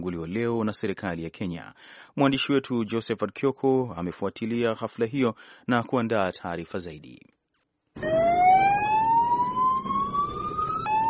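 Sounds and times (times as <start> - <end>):
speech: 0.0 - 7.4
ambulance siren at the Garissa University attack in Kenya: 8.0 - 11.0.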